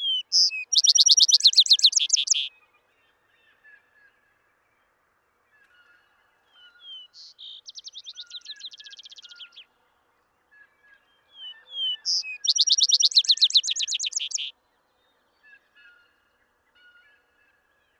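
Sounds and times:
Vesper sparrow songs of slurred whistles and a fast bright trill: 0.0 - 2.6, 6.6 - 9.7, 10.6 - 14.5.

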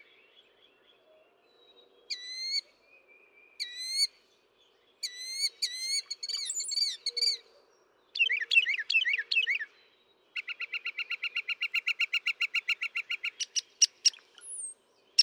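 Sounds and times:
northern mockingbird singing: 5.0 - 7.4, 8.2 - 9.7, 10.4 - 15.2.

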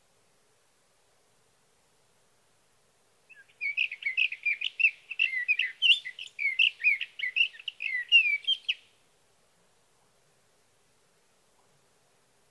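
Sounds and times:
sage thrasher singing a long warble: 3.3 - 8.8.

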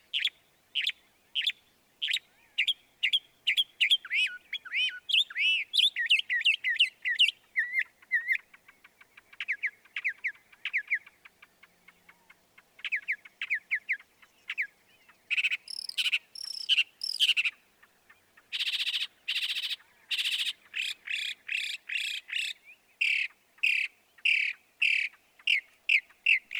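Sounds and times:
northern mockingbird singing: 0.1 - 26.5.

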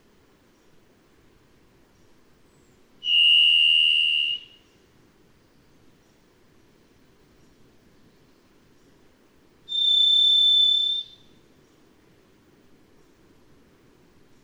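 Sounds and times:
varied thrush buzzy whistle: 3.0 - 4.6, 9.7 - 11.3.

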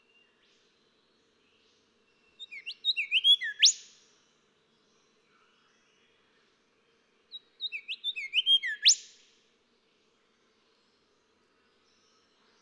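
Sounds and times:
Golden whistler whistling song: 2.3 - 3.9, 7.6 - 9.1.

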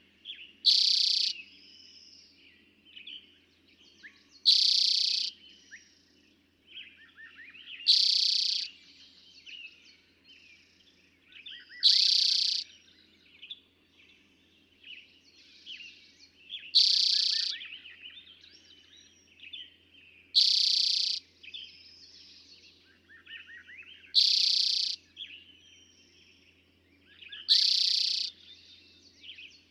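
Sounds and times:
other birds chirping: 0.0 - 1.5, 3.9 - 5.9, 6.7 - 8.8, 10.6 - 13.6, 14.2 - 29.7
Eastern towhee trilling: 0.3 - 1.4, 4.4 - 5.4, 7.1 - 8.7, 11.4 - 12.8, 16.5 - 18.3, 20.3 - 21.6, 23.1 - 25.9, 27.1 - 29.6.

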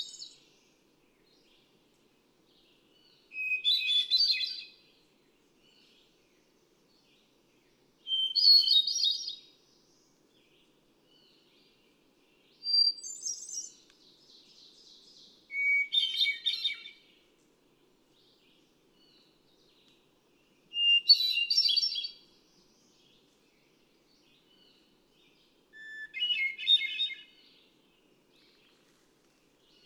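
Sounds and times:
hermit thrush song: 0.0 - 1.8, 2.5 - 17.3, 18.1 - 29.8.

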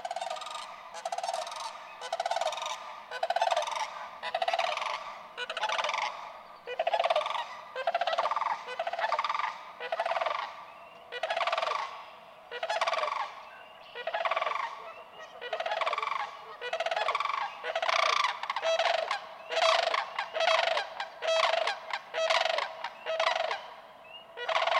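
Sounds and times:
sandhill crane calling: 0.0 - 24.7.

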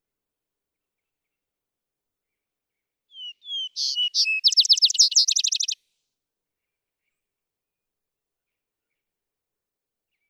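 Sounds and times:
vesper sparrow song: 3.2 - 5.8.

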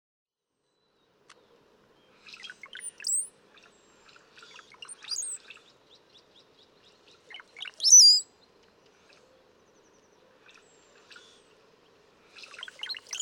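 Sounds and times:
brown-headed cowbird song: 0.6 - 13.2.

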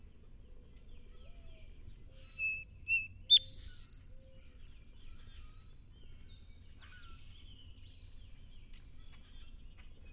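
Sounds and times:
song sparrow song: 0.1 - 10.1.

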